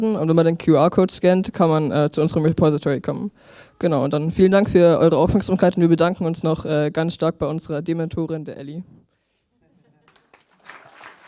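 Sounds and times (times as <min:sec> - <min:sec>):
speech: 0:00.0 - 0:09.1
audience applause: 0:10.0 - 0:11.2.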